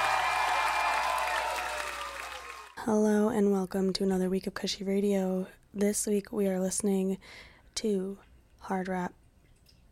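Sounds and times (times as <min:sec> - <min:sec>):
audience applauding a finalist drummer: 0:00.0 - 0:02.8
speech: 0:02.8 - 0:09.2.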